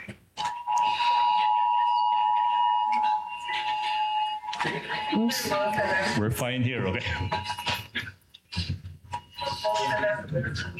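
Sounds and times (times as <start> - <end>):
several phones sounding emergency alert alarms simultaneously: 0.4 - 6.2
speech: 4.6 - 7.7, 9.7 - 10.7.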